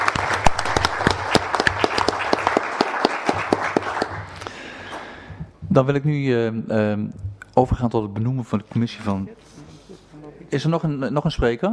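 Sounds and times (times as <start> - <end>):
small round of applause: 0.0 - 5.3
speech: 5.8 - 9.6, 10.5 - 11.7.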